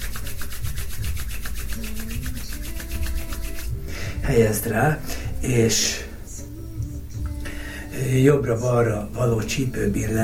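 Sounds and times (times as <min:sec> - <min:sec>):
hands rubbing together: 0:00.0 - 0:03.8
speech: 0:04.2 - 0:06.0, 0:08.0 - 0:10.2.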